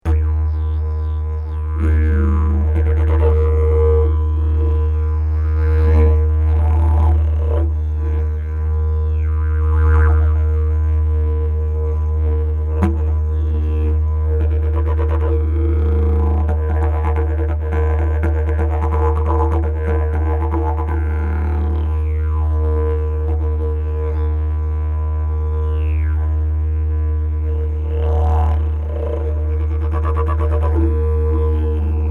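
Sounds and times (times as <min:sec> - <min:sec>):
didgeridoo: 0:00.0 - 0:32.0.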